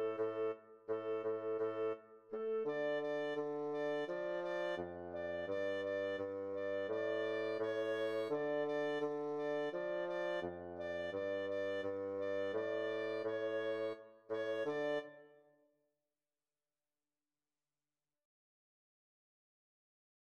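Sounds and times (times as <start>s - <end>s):
clarinet: 0.0s - 15.4s.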